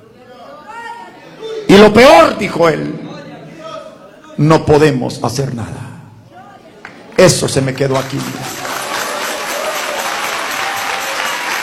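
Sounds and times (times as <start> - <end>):
speech: 1.7 - 3.0, 4.4 - 5.9, 7.2 - 8.6
applause: 7.8 - 11.6.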